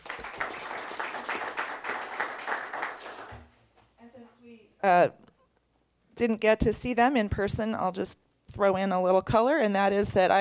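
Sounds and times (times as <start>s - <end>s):
audience clapping: 0.0s - 3.6s
speech: 4.8s - 5.2s, 6.2s - 10.3s.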